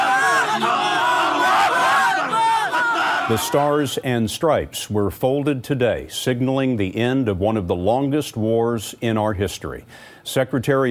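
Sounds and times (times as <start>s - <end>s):
large crowd cheering and shouting in celebration: 0.0s - 4.0s
speech: 3.3s - 10.8s.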